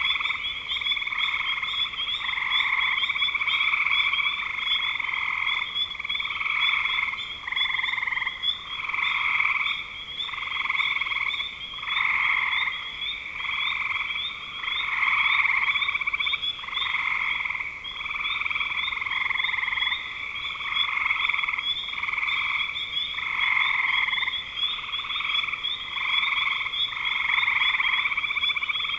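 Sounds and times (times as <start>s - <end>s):
frog chorus trilling: 0.0s - 28.9s.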